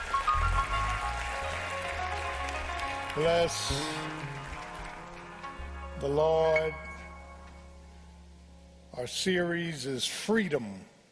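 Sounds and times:
audience hand clapping: 0.0s - 6.5s
speech: 3.2s - 4.3s, 6.0s - 6.9s, 9.0s - 10.9s.

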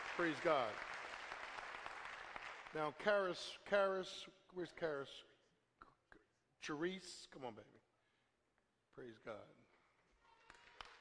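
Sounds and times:
audience hand clapping: 0.0s - 3.2s, 10.4s - 10.9s
speech: 0.2s - 0.9s, 2.7s - 5.3s, 6.6s - 7.8s, 9.0s - 9.7s.

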